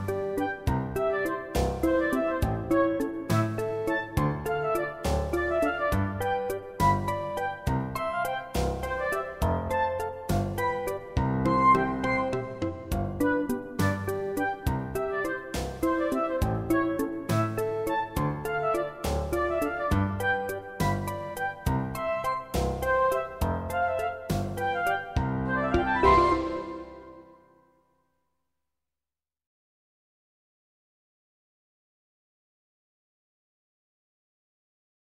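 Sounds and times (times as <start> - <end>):
instrumental music: 0.0 - 27.7.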